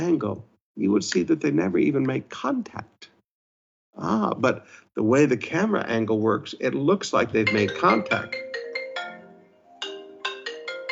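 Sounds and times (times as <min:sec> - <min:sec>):
speech: 0:00.0 - 0:03.1, 0:04.0 - 0:08.4
mobile phone ringing: 0:07.4 - 0:10.9.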